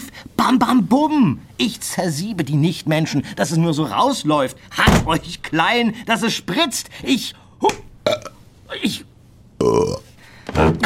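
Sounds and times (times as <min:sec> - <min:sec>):
speech: 0:00.4 - 0:07.8, 0:08.8 - 0:10.0
burps from swallowed air: 0:08.0 - 0:08.4, 0:09.6 - 0:10.8.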